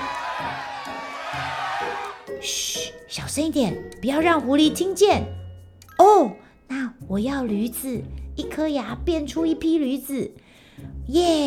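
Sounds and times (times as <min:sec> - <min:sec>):
villagers cheering: 0:00.0 - 0:02.3
speech: 0:02.4 - 0:05.4, 0:06.0 - 0:06.4, 0:07.1 - 0:11.4.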